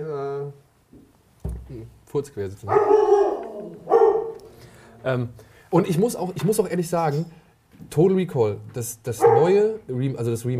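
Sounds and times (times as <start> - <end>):
speech: 2.1 - 3.3, 5.0 - 10.5
dog barking: 2.7 - 4.5, 9.2 - 9.6.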